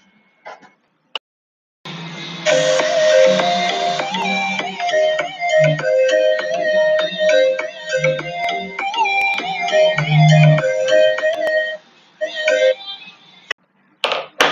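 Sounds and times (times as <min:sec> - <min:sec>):
short electronic instrumental song with bass line: 0:02.4 - 0:13.0.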